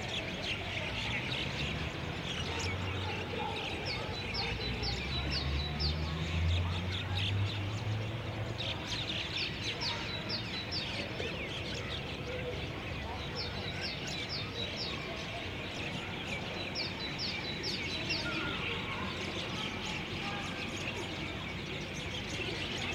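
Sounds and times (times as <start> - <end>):
birds: 0.0 - 22.9
urban spring ambience: 0.0 - 22.9.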